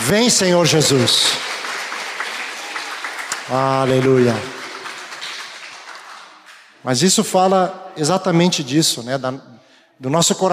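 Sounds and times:
audience applause: 0.0 - 6.7
speech: 0.1 - 1.5, 3.5 - 4.6, 6.8 - 10.5.

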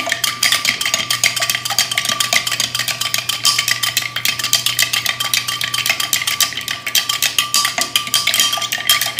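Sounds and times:
spoon stirring ice cubes in a cocktail glass: 0.0 - 9.1.

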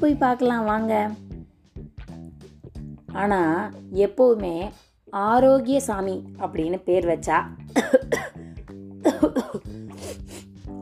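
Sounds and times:
speech: 0.0 - 1.2, 3.1 - 8.4, 9.0 - 10.1
person coughing from a cold: 7.8 - 8.4, 9.0 - 10.5.

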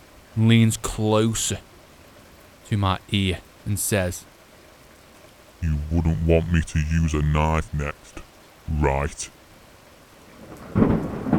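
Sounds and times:
speech: 0.4 - 1.7, 2.7 - 4.3, 5.6 - 9.4
thunderstorm: 10.4 - 11.3.

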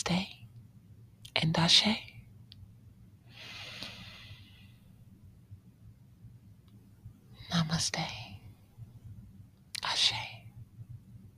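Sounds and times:
speech: 0.0 - 0.4, 1.4 - 2.1, 7.8 - 8.3
deep breath and slow exhale during a guided meditation: 3.3 - 4.9.

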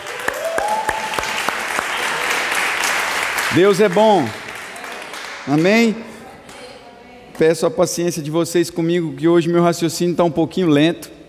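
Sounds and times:
church audience applause: 0.0 - 5.8
speech: 3.5 - 4.4, 5.5 - 6.1, 7.4 - 11.2.

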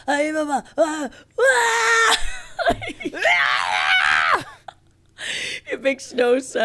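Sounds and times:
speech: 0.0 - 4.5, 5.2 - 6.6
man imitating an R2-D2-style scream with a Nibbler twist: 0.1 - 4.7.

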